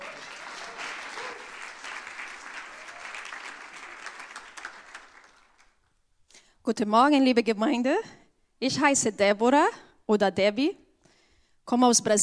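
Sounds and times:
applause: 0:00.0 - 0:05.9
speech: 0:06.6 - 0:10.8, 0:11.7 - 0:12.2.

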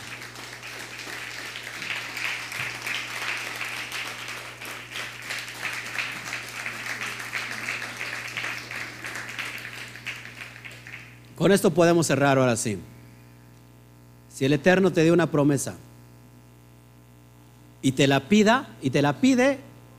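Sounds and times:
audience applause: 0:00.0 - 0:11.3
speech: 0:11.4 - 0:13.0, 0:14.4 - 0:15.9, 0:17.8 - 0:19.7.

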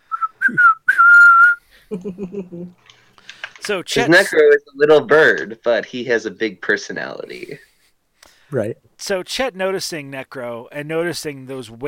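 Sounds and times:
person whistling a theme song tune: 0:00.0 - 0:01.6
speech: 0:01.9 - 0:02.9, 0:03.7 - 0:07.7, 0:08.5 - 0:11.8.

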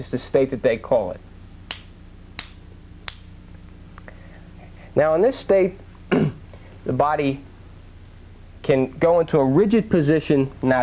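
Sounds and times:
speech: 0:00.0 - 0:01.3, 0:05.0 - 0:06.2, 0:06.8 - 0:07.5, 0:08.6 - 0:10.8
finger snaps: 0:01.7 - 0:04.2.

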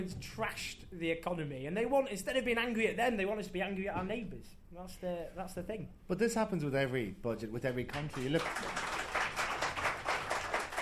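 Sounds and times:
speech: 0:00.0 - 0:08.8
audience clapping: 0:07.9 - 0:10.7.

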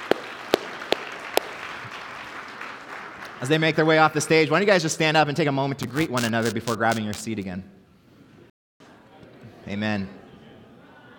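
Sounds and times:
round of applause: 0:00.0 - 0:03.5
speech: 0:03.4 - 0:07.8, 0:09.7 - 0:10.2.

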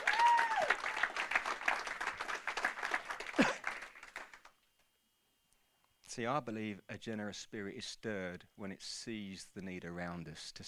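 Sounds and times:
audience applause: 0:00.0 - 0:04.5
speech: 0:06.2 - 0:10.6.

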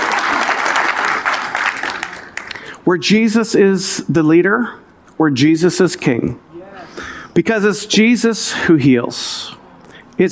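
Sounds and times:
audience clapping: 0:00.0 - 0:02.7
speech: 0:02.9 - 0:06.5, 0:07.4 - 0:09.6.

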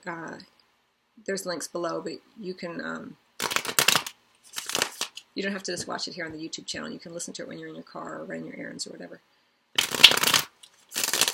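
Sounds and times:
speech: 0:00.0 - 0:00.6, 0:01.2 - 0:03.2, 0:05.4 - 0:09.4
tarot cards being shuffled: 0:03.4 - 0:05.2, 0:09.8 - 0:11.3.

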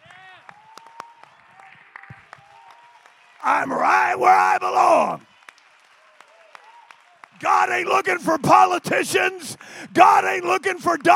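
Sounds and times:
audience clapping hands: 0:00.0 - 0:11.1
speech: 0:03.4 - 0:05.3, 0:07.4 - 0:11.1.

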